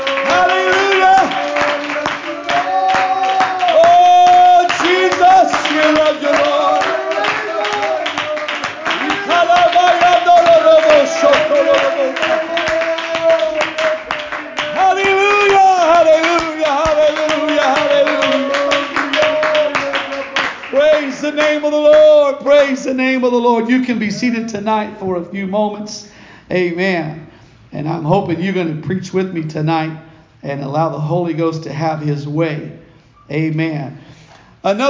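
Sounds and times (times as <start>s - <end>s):
audience clapping hands in worship: 0.0s - 22.7s
speech: 23.2s - 34.8s.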